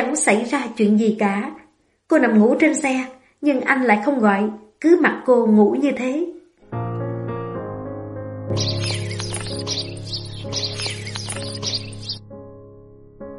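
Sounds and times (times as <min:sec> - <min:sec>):
speech: 0:00.1 - 0:06.3, 0:08.6 - 0:09.0
birds chirping: 0:08.5 - 0:12.2.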